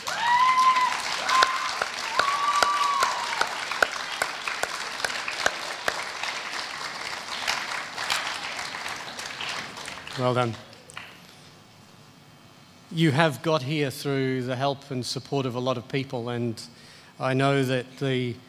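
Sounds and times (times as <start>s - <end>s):
audience applause: 0.0s - 11.1s
speech: 10.2s - 10.7s, 12.9s - 18.4s.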